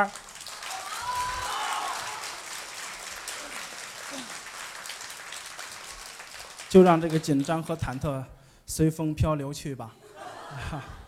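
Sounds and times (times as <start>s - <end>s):
speech: 0.0s - 0.3s, 6.7s - 11.0s
audience applause at a crosstalk comedy show at Deyun Society: 0.0s - 8.0s
laughter: 10.0s - 11.0s.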